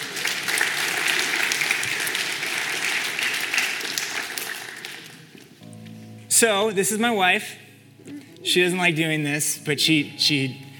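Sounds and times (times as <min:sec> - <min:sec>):
round of applause: 0:00.0 - 0:05.4
speech: 0:06.4 - 0:07.6, 0:08.4 - 0:10.6.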